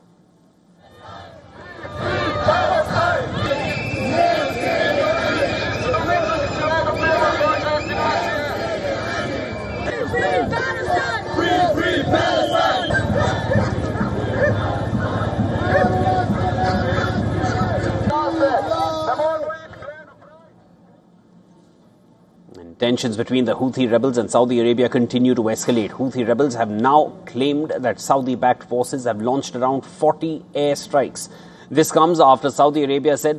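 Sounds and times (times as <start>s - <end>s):
crowd of marchers chanting slogans in unison: 0.8s - 19.4s
speech: 23.0s - 33.3s.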